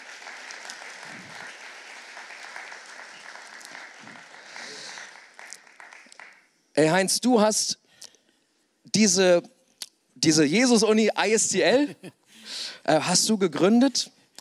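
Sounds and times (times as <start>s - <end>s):
crowd applauding: 0.0s - 6.5s
speech: 6.8s - 7.8s, 9.0s - 9.5s, 10.2s - 12.2s, 12.8s - 14.2s.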